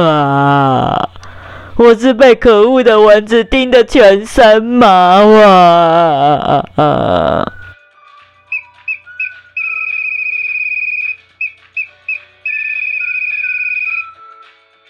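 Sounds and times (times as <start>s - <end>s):
speech: 0.0s - 1.1s, 1.8s - 7.6s
owl whistling: 7.5s - 14.6s.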